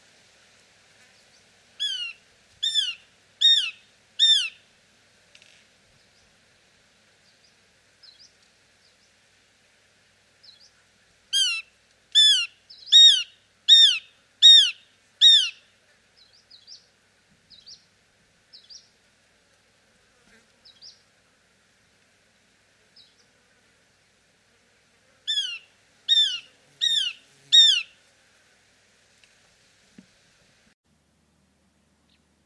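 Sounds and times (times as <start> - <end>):
shikra calling: 1.8 - 4.7, 10.5 - 16.8, 25.3 - 28.0.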